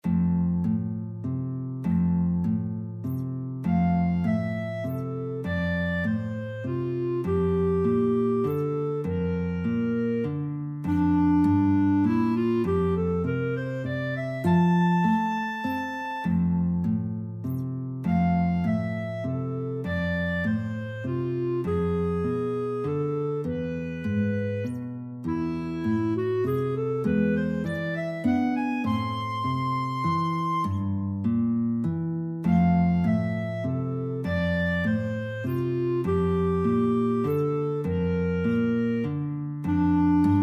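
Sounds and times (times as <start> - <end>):
guitar and clarinet duet: 0.0 - 40.4.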